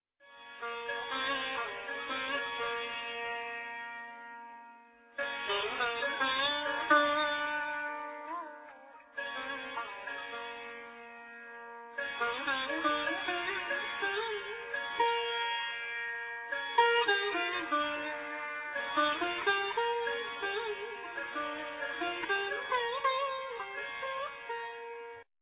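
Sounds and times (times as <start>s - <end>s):
sitar: 0.2s - 25.3s.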